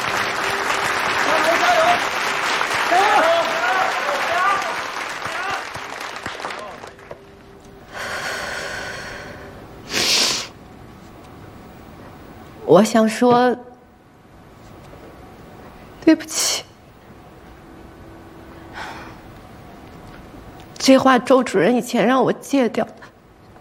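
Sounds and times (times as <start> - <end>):
audience applause: 0.0 - 7.4
speech: 12.7 - 13.7, 20.9 - 23.0.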